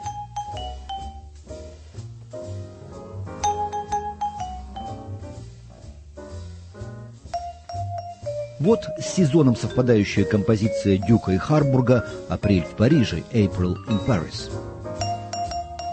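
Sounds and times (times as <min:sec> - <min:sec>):
vibraphone note ringing and slowly decaying: 0:00.0 - 0:01.3, 0:03.4 - 0:05.1, 0:07.3 - 0:08.6, 0:15.0 - 0:15.9
speech: 0:08.6 - 0:14.7.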